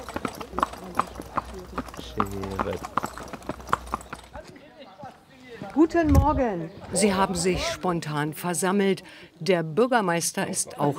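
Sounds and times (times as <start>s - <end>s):
horse hooves clip-clopping from a horse-drawn carriage: 0.0s - 6.0s
speech: 2.2s - 3.1s, 5.8s - 10.9s.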